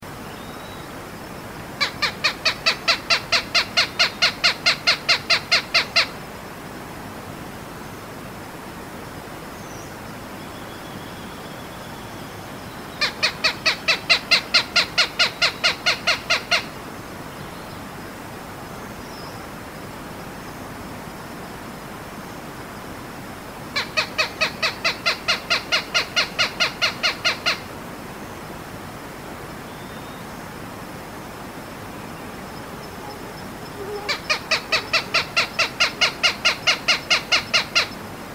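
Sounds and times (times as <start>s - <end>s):
constant hiss: 0.0s - 38.3s
bicolored hawk cackling calls: 1.8s - 6.2s, 13.0s - 16.8s, 23.8s - 27.7s, 32.6s - 38.0s.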